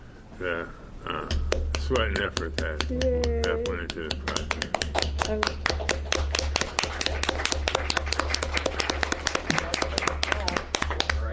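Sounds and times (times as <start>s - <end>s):
speech: 0.4s - 6.0s
audience clapping: 3.8s - 11.3s.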